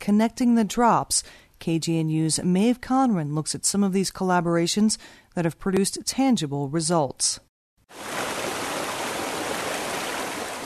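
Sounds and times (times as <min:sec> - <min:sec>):
speech: 0:00.0 - 0:08.2
Alamosa River flowing in south-central Colorado: 0:07.9 - 0:10.6.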